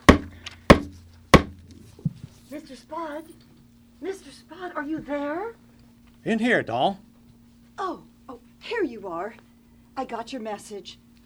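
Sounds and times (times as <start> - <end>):
knock at an office door: 0.0 - 2.3
speech: 2.5 - 5.6, 6.2 - 7.1, 7.8 - 11.0.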